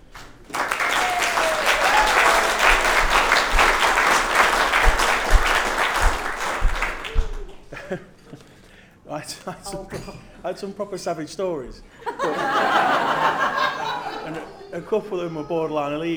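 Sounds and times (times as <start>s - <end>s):
audience applause: 0.0s - 7.5s
laughter: 0.1s - 8.2s, 12.0s - 15.2s
speech: 9.5s - 16.1s.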